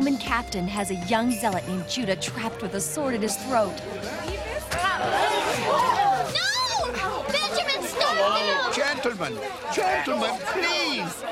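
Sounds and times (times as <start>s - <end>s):
speech: 0.2s - 6.0s, 8.7s - 11.3s
restless crowd murmuring in an inn: 2.6s - 11.3s.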